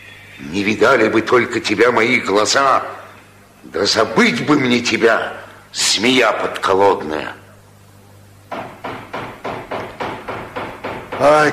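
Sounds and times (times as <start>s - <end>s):
speech: 0.4s - 3.0s, 3.6s - 7.4s, 11.2s - 11.5s
knocking on a door: 8.5s - 11.5s.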